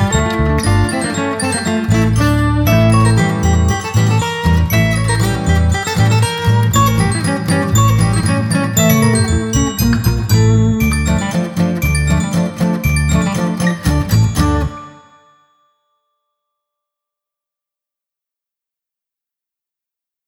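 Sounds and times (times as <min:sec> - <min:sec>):
instrumental music: 0:00.0 - 0:15.6.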